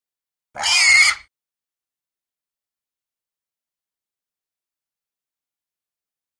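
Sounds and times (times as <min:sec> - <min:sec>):
pig high-pitched squeal: 0:00.6 - 0:01.3.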